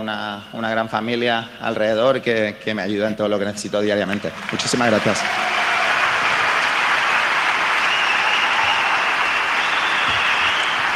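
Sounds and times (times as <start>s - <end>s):
speech: 0.0s - 5.6s
large arena crowd giving a sustained ovation: 3.9s - 10.9s.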